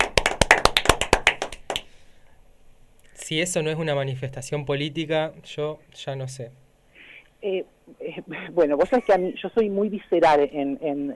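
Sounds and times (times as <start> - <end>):
hand claps: 0.0 - 2.0
speech: 3.3 - 6.6, 7.4 - 11.1.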